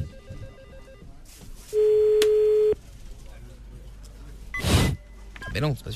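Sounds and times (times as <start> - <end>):
telephone line tone during call: 0.0 - 1.1, 1.8 - 2.8
speech: 5.6 - 5.9.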